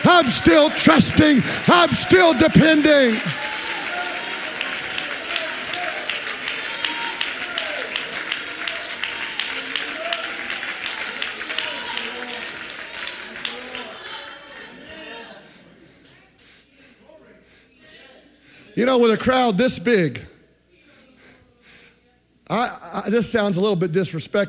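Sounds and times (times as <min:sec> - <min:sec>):
crowd clapping and shouting: 0:00.0 - 0:16.6
speech: 0:00.1 - 0:03.6, 0:18.8 - 0:20.3, 0:22.5 - 0:24.4.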